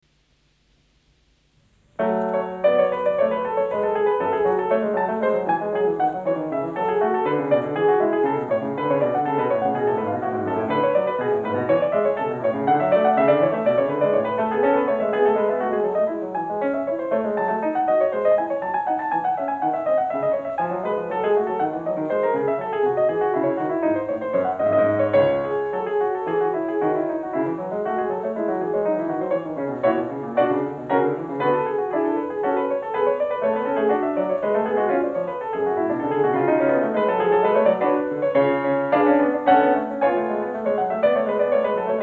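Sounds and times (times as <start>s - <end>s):
piano prelude in F sharp minor: 1.6s - 42.0s.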